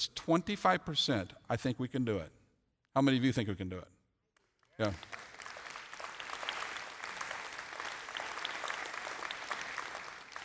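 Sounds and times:
speech: 0:00.0 - 0:04.0, 0:04.8 - 0:05.3
audience clapping: 0:04.4 - 0:10.4.

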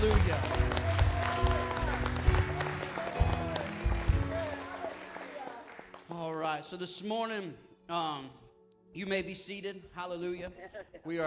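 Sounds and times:
audience clapping hands in praise: 0:00.0 - 0:06.5
speech: 0:06.7 - 0:11.2.

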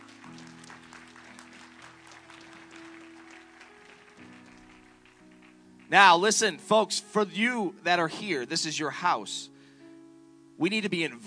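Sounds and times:
audience applause: 0:00.0 - 0:05.8
speech: 0:05.9 - 0:09.5, 0:10.6 - 0:11.2.

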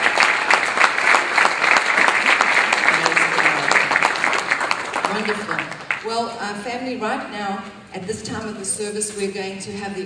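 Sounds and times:
audience applause: 0:00.0 - 0:06.2
speech: 0:05.2 - 0:10.0.

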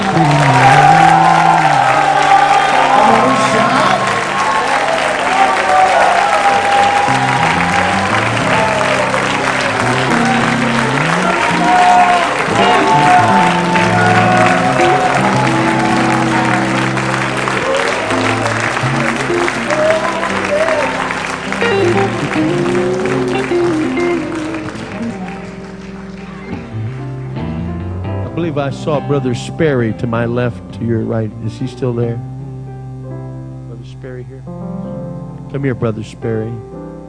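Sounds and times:
church congregation shouting praise: 0:00.0 - 0:16.8, 0:17.5 - 0:21.3
church congregation clapping hands: 0:00.0 - 0:26.9
speech: 0:28.6 - 0:32.3, 0:35.5 - 0:36.7.

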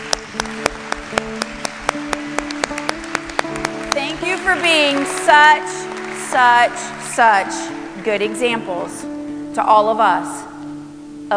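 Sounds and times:
rhythmic hand clapping: 0:00.0 - 0:09.1
speech: 0:04.5 - 0:10.4.

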